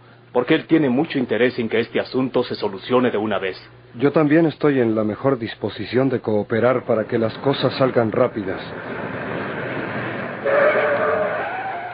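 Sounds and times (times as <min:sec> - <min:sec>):
speech: 0:00.4 - 0:09.0
brakes squealing: 0:07.1 - 0:11.9
car pulling up and stopping outside: 0:07.3 - 0:11.9.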